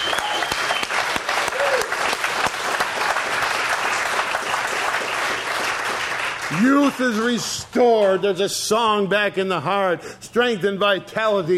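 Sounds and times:
audience clapping hands: 0:00.0 - 0:08.3
speech: 0:06.5 - 0:11.5.

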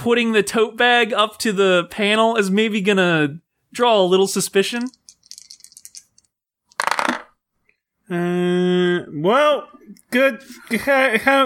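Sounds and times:
speech: 0:00.0 - 0:05.0, 0:08.1 - 0:11.4
two ten-sided dice rolled for a tabletop game: 0:04.8 - 0:07.4.

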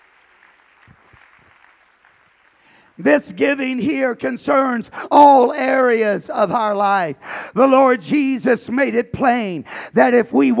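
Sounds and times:
audience clapping hands: 0:00.0 - 0:03.0
speech: 0:03.0 - 0:10.5.

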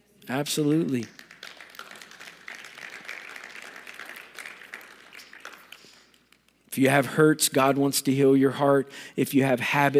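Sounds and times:
speech: 0:00.3 - 0:01.2, 0:06.8 - 0:09.9
audience applause: 0:00.9 - 0:06.4.

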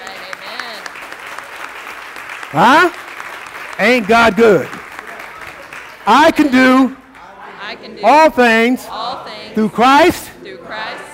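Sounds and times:
audience clapping: 0:00.0 - 0:07.4
speech: 0:02.5 - 0:03.0, 0:03.8 - 0:04.8, 0:06.1 - 0:07.0, 0:07.8 - 0:09.0, 0:09.6 - 0:10.2.

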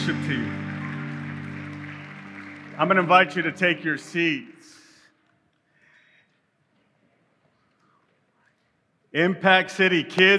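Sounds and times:
audience clapping hands: 0:00.0 - 0:04.7
speech: 0:00.1 - 0:00.7, 0:02.8 - 0:04.8, 0:09.2 - 0:10.3.

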